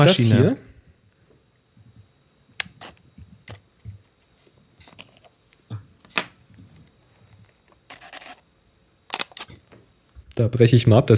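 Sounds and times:
speech: 0:00.0 - 0:00.6, 0:10.4 - 0:11.1
digital camera focus whirring: 0:01.8 - 0:08.5, 0:09.1 - 0:09.6
digital camera shutter clicks and bursts: 0:09.1 - 0:09.5.

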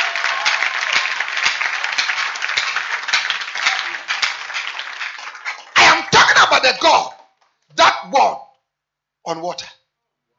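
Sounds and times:
church congregation clapping during a sermon: 0:00.0 - 0:07.0
speech: 0:06.7 - 0:07.1, 0:09.3 - 0:09.8.

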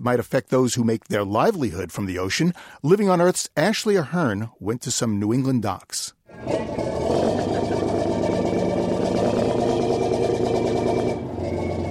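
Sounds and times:
speech: 0:00.0 - 0:07.8
fishing boat engine docking at pier: 0:06.3 - 0:11.8.

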